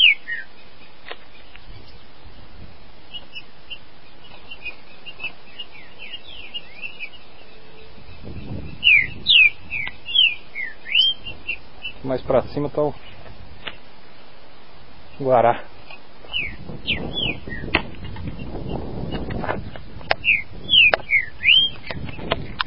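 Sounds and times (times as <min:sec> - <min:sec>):
green-winged saltator singing in the bush: 0:00.0 - 0:02.2, 0:03.1 - 0:12.2, 0:16.3 - 0:19.3, 0:20.0 - 0:22.4
speech: 0:12.1 - 0:13.1, 0:15.2 - 0:15.7.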